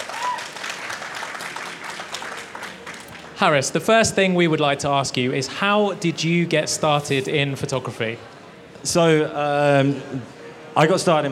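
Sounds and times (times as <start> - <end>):
round of applause from a crowd: 0.0 - 3.6
speech: 3.4 - 11.3.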